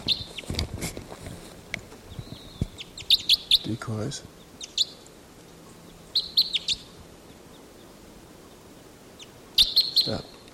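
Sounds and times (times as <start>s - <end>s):
wild bird chirping: 0.0s - 0.5s, 2.0s - 10.5s
speech: 3.7s - 4.3s, 10.1s - 10.3s.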